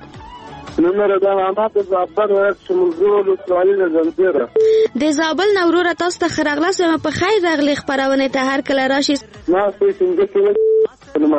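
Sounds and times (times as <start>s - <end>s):
speech: 0.7s - 10.6s, 11.2s - 11.3s
telephone tone after a caller's connection is cut off: 10.6s - 10.9s.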